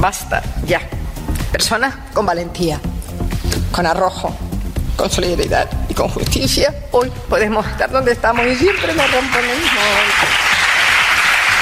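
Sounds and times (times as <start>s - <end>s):
speech: 0.0s - 2.9s, 3.5s - 4.4s, 5.0s - 10.4s
applause for a speech: 8.4s - 11.6s.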